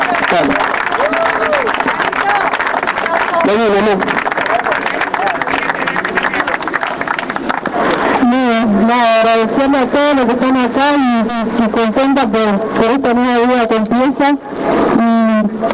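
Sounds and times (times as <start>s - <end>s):
audience applause: 0.0s - 8.2s
speech: 0.3s - 0.7s, 3.5s - 4.2s, 8.9s - 15.7s.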